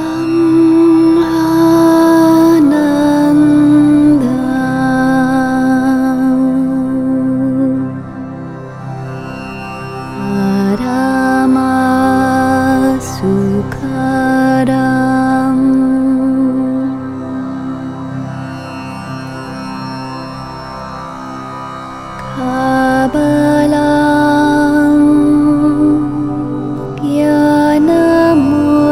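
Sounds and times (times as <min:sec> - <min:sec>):
mantra chanting: 0:00.0 - 0:08.5, 0:10.2 - 0:18.2, 0:22.3 - 0:28.9.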